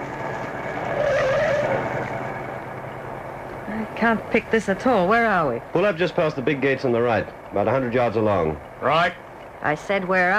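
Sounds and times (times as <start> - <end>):
car engine and road noise: 0.0 - 10.3
car tyres squealing turning left at a corner: 0.9 - 2.2
speech: 4.0 - 10.3.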